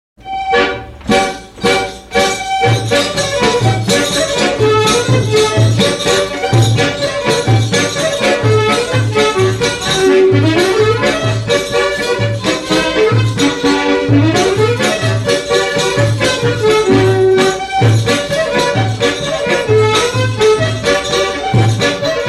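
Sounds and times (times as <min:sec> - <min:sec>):
instrumental music: 0:00.2 - 0:22.2.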